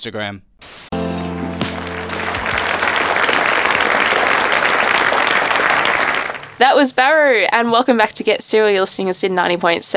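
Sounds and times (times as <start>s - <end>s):
speech: 0.0s - 0.5s, 6.7s - 9.9s
last sustained musical notes of a song: 0.9s - 5.2s
applause after the end of a song: 1.6s - 6.6s.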